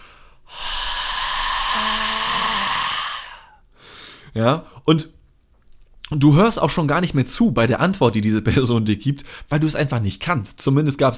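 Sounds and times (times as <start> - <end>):
voice imitating a heavy exhaled breath: 0.0 - 3.6
speech: 4.4 - 5.2, 6.1 - 11.1.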